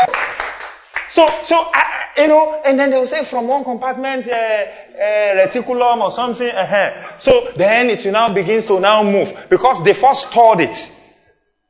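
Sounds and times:
audience clapping: 0.0 - 1.5
speech: 1.2 - 11.0.

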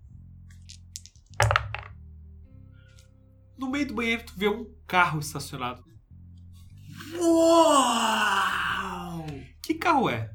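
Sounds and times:
dice being rolled: 0.5 - 2.0
speech: 3.6 - 5.9, 7.2 - 8.4, 9.7 - 10.3.

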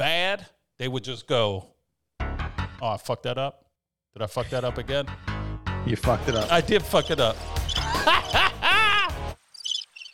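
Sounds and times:
speech: 0.0 - 1.7, 2.8 - 3.6, 4.2 - 8.4
laughter: 7.8 - 9.3
cricket chirping sound effect from sound pad: 9.5 - 10.1.

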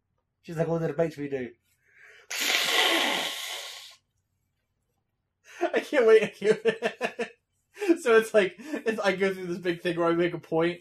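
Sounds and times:
speech: 0.4 - 1.7, 5.8 - 10.7
nose blowing: 2.3 - 4.0.

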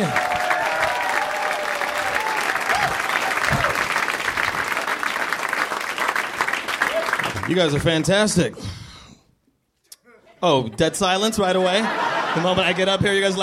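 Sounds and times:
faint audience whoops: 0.0 - 4.0, 6.8 - 7.3
stand-up comedy audience applause: 0.0 - 8.2
speech: 7.5 - 8.8, 10.4 - 13.4
laughter: 10.1 - 13.4.

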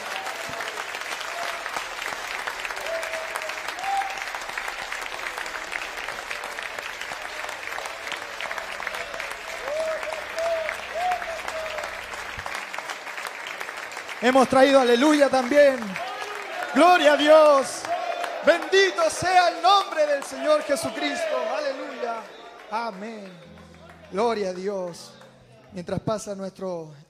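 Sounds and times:
crowd applause: 0.0 - 25.9
low hum: 4.4 - 12.9
speech: 14.2 - 16.0, 16.7 - 17.8, 18.4 - 23.4, 24.1 - 27.0.

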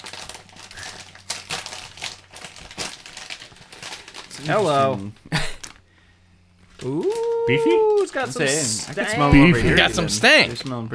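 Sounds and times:
crisp bag being opened: 0.0 - 5.8, 6.6 - 9.1
speech: 4.4 - 5.4, 6.8 - 10.9.

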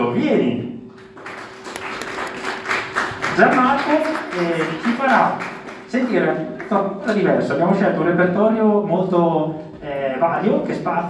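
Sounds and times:
speech: 0.2 - 0.8, 3.4 - 11.0
audience applause: 1.1 - 6.8.

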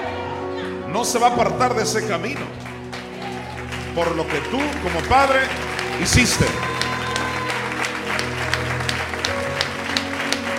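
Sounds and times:
speech: 0.9 - 2.7, 4.0 - 6.8
audience applause: 2.2 - 10.5.

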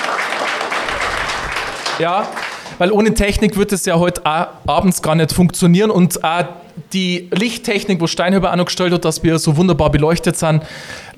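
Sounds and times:
clapping: 0.0 - 2.8
speech: 2.0 - 11.1.

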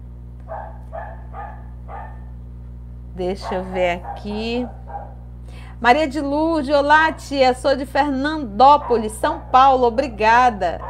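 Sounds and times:
steady low hum: 0.0 - 10.8
dog barking at a passing cat: 0.5 - 2.3, 3.4 - 5.2, 8.7 - 9.8
speech: 3.2 - 4.8, 5.5 - 10.8.

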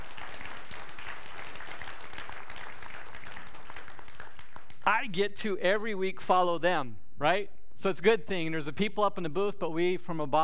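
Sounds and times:
audience applause: 0.0 - 4.8
speech: 4.9 - 10.4.

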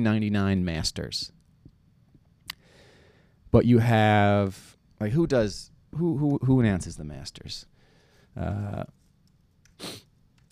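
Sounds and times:
speech: 0.0 - 1.4, 3.5 - 7.7, 8.4 - 9.0, 9.8 - 10.0
hiss: 0.0 - 10.5
person sniffling into the microphone: 9.8 - 10.1.

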